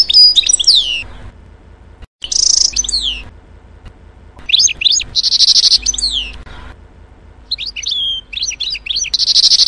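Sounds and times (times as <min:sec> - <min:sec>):
canary song of rapid high chirps and swept notes: 0:00.0 - 0:01.2, 0:02.2 - 0:03.3, 0:04.4 - 0:06.7, 0:07.4 - 0:09.6.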